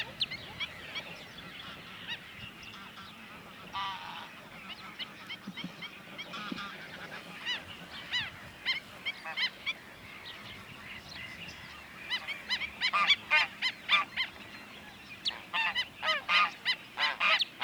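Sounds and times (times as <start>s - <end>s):
black-winged stilt calling: 0.0s - 2.2s, 6.4s - 17.6s.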